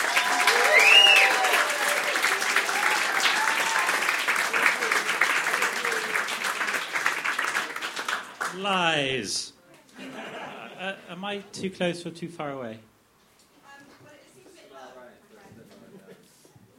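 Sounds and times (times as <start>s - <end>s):
audience clapping: 0.0s - 9.2s
speech: 8.6s - 9.6s, 10.8s - 12.9s
laughter: 9.9s - 11.2s.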